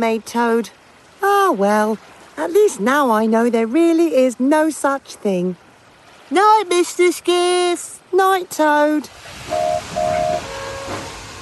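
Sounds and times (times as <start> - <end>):
speech: 0.0 - 5.6, 6.3 - 10.2
steam engine puffing: 9.4 - 11.4.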